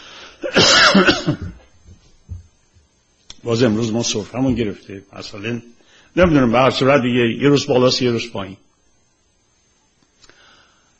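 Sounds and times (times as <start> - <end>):
harsh loud cough: 0.4 - 1.7
speech: 0.5 - 1.6, 3.4 - 8.6.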